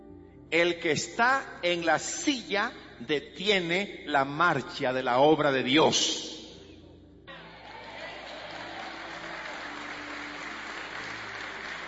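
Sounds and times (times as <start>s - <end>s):
speech: 0.5s - 6.4s
crowd applauding: 7.4s - 11.8s.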